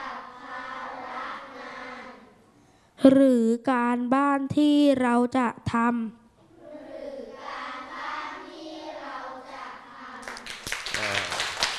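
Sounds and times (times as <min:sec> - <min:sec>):
speech: 0:03.0 - 0:06.2
students clapping: 0:10.2 - 0:11.7.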